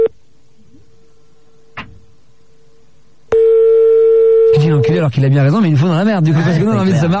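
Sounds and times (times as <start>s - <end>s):
faint hum: 0.0s - 7.1s
telephone ringing tone: 3.3s - 4.9s
speech: 5.0s - 7.1s.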